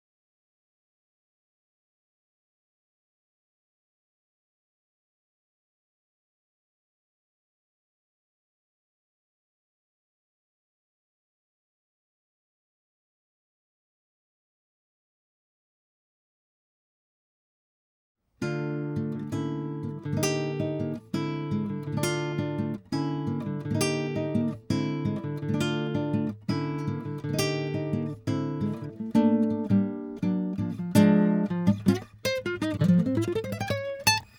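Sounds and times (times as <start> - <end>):
guitar: 18.4 - 34.3.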